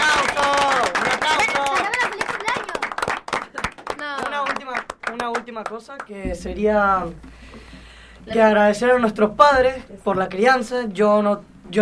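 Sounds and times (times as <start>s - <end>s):
applause: 0.0s - 6.1s
speech: 5.7s - 11.8s.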